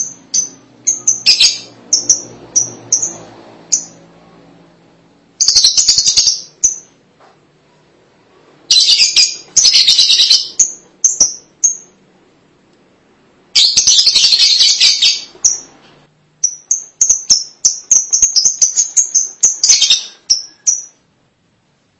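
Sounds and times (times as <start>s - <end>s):
lovebird calls: 0.0s - 4.0s, 5.4s - 7.0s, 8.7s - 12.0s, 13.6s - 15.8s, 16.4s - 21.0s.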